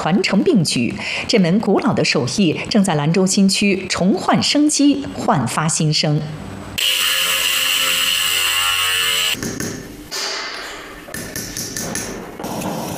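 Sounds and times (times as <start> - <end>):
speech: 0.0 - 7.3
small grinding tool whining on old porcelain: 6.8 - 9.4.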